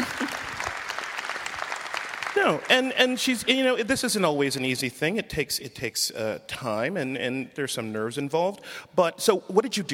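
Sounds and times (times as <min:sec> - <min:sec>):
audience applause: 0:00.0 - 0:03.4
speech: 0:02.4 - 0:09.9.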